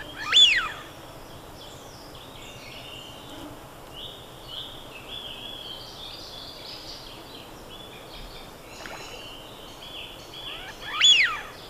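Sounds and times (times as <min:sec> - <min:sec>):
Eurasian wigeon Anas penelope whistling: 0:00.2 - 0:00.7, 0:10.8 - 0:11.5.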